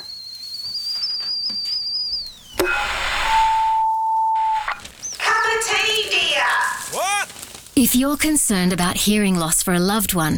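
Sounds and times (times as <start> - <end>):
kettle whistling: 0.0 - 7.3
speech: 7.8 - 10.3.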